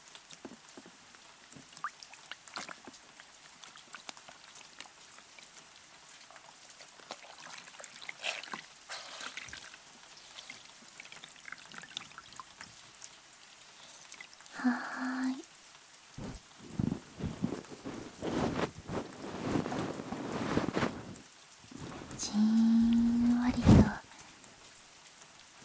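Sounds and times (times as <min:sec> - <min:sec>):
rain sounds: 0:00.0 - 0:25.6
ear cleaning ASMR: 0:16.2 - 0:21.1
ear massage ASMR: 0:16.2 - 0:21.2, 0:21.8 - 0:24.0.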